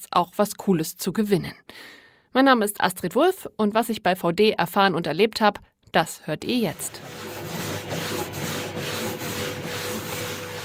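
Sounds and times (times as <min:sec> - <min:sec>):
speech: 0:00.0 - 0:07.3
abrasion tester rubbing sandpaper on material: 0:06.7 - 0:10.6.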